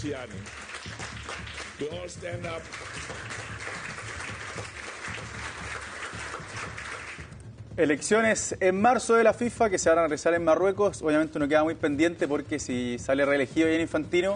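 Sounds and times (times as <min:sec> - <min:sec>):
speech: 0:00.0 - 0:03.9, 0:07.8 - 0:14.3
crowd applauding: 0:00.0 - 0:07.5.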